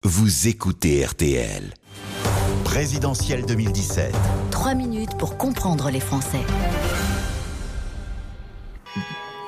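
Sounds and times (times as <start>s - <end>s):
speech: 0.1s - 7.1s, 9.0s - 9.2s
church bells ringing: 8.8s - 9.4s.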